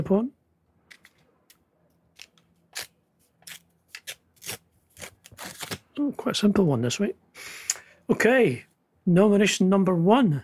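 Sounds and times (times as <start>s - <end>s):
speech: 0.0s - 0.4s, 6.0s - 10.4s
envelope being opened: 2.2s - 5.9s.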